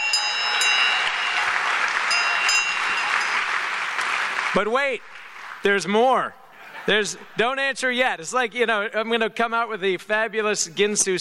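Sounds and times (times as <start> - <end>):
American-made bell ringing: 0.0 - 4.3
speech: 4.6 - 11.2.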